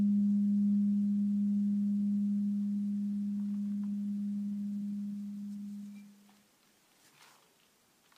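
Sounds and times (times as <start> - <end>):
8-900g Bengal bowl ringing in G sharp: 0.0 - 6.3.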